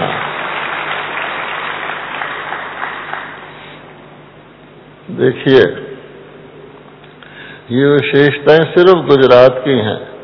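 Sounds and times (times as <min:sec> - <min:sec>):
audience clapping: 0:00.0 - 0:03.8
speech: 0:05.1 - 0:05.8, 0:07.7 - 0:10.1.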